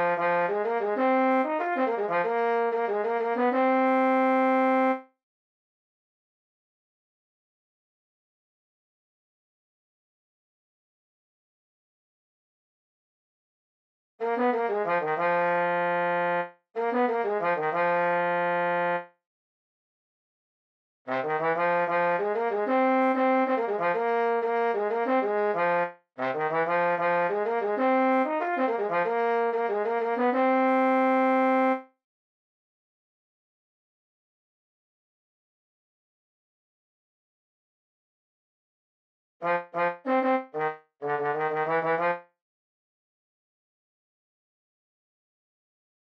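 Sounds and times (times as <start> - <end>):
trombone: 0.0 - 5.0, 14.2 - 19.0, 21.1 - 31.8, 39.4 - 42.2.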